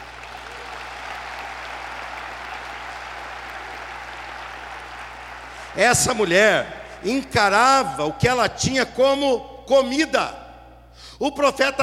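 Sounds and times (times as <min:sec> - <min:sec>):
audience applause: 0:00.0 - 0:06.1
low steady hum: 0:03.1 - 0:11.8
speech: 0:05.8 - 0:10.4, 0:11.0 - 0:11.8.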